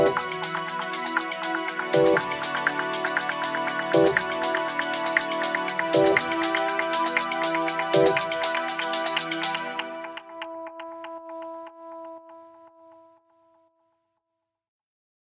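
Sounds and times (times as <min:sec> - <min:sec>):
modern club dance music: 0:00.0 - 0:10.4.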